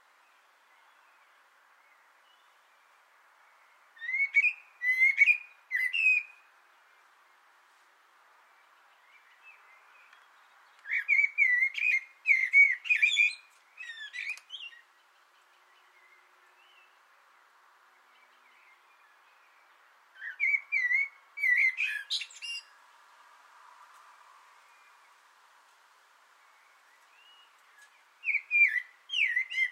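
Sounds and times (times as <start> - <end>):
common blackbird song: 4.0 - 6.5, 9.1 - 14.9, 18.1 - 22.8, 26.5 - 29.6.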